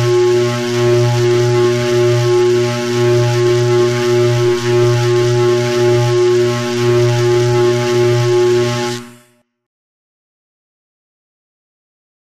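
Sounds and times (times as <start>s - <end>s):
laser pulse: 0.0s - 9.4s
power core hum: 0.0s - 9.4s
severe electrical throbbing and distortion: 0.0s - 9.4s.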